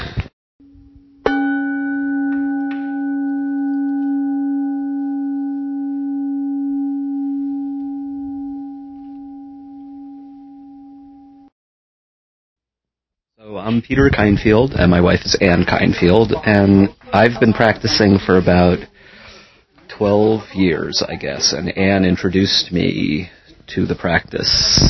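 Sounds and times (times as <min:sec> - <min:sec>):
meditation bowl ringing: 0:00.6 - 0:11.5
speech: 0:13.8 - 0:18.9, 0:20.0 - 0:24.8.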